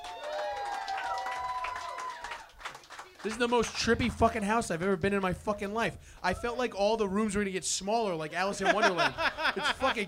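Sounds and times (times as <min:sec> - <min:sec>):
whoops and shouts: 0:00.0 - 0:02.5
group applause for host: 0:00.0 - 0:04.1
speech: 0:03.2 - 0:10.0
laughter: 0:08.2 - 0:10.0.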